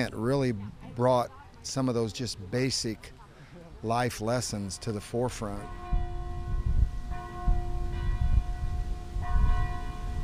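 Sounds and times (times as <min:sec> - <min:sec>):
speech: 0:00.0 - 0:03.2, 0:03.8 - 0:06.0
all the church bells in the city ringing in unison: 0:04.6 - 0:10.2.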